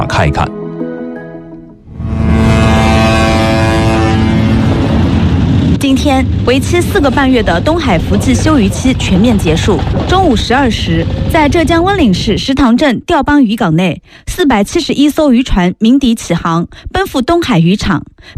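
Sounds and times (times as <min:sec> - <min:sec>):
people talking: 0:00.0 - 0:00.5, 0:05.8 - 0:18.3
fishing boat horns blaring while setting sail: 0:01.9 - 0:10.4.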